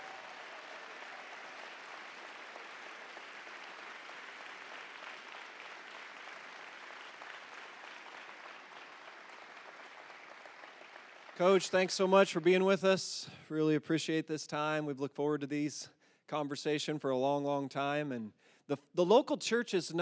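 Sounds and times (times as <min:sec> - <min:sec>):
audience applause welcoming the head coach of the Indianapolis Colts: 0:00.0 - 0:12.6
speech: 0:11.4 - 0:19.9.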